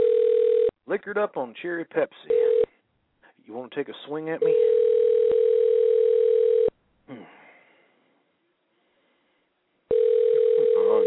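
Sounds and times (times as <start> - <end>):
outgoing phone call ringback tone ringing unanswered: 0.0 - 0.7, 2.3 - 2.7, 4.4 - 6.7, 9.9 - 11.0
speech: 0.9 - 2.5, 3.5 - 4.8, 7.1 - 7.4.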